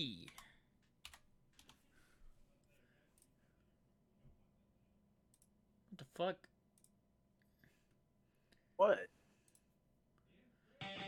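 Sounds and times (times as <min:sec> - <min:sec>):
speech: 0:00.0 - 0:00.3, 0:06.0 - 0:06.5, 0:08.8 - 0:09.2
typing on a computer keyboard: 0:00.2 - 0:01.8.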